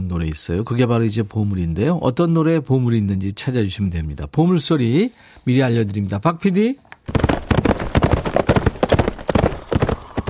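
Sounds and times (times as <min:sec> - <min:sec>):
speech: 0:00.1 - 0:07.2
galloping horse hooves: 0:07.1 - 0:10.2.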